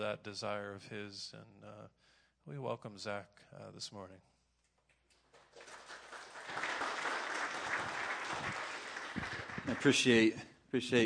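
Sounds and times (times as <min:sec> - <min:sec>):
speech: 0:00.0 - 0:04.3, 0:09.6 - 0:11.0
audience applause: 0:05.3 - 0:10.3.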